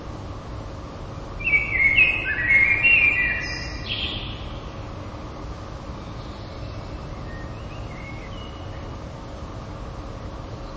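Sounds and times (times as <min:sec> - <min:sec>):
common blackbird song: 0:01.4 - 0:04.9, 0:05.9 - 0:09.1, 0:10.5 - 0:10.7.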